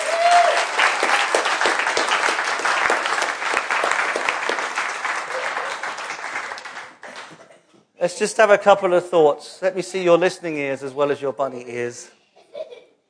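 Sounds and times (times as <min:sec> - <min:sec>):
round of applause: 0:00.0 - 0:07.4
speech: 0:08.0 - 0:12.2.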